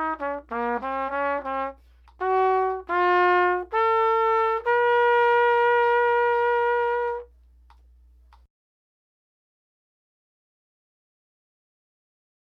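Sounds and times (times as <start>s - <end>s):
trumpet etude in C minor: 0.0s - 7.3s.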